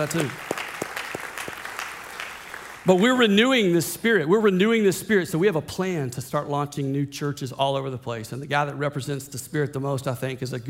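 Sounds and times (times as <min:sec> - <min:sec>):
speech: 0:00.0 - 0:00.5, 0:02.8 - 0:10.6
Methodist church congregation applauding the planting of 40 churches: 0:00.0 - 0:03.4.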